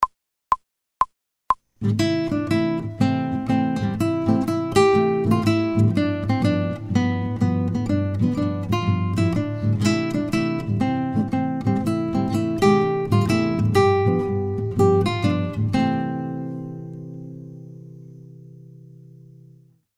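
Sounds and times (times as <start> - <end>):
fast guitar playing without metronome: 1.8 - 16.9.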